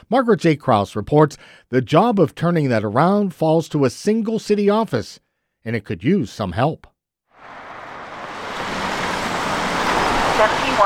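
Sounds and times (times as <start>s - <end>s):
speech: 0.1s - 7.6s
city bus pulling up at a stop on Penn Avenue: 7.4s - 10.8s.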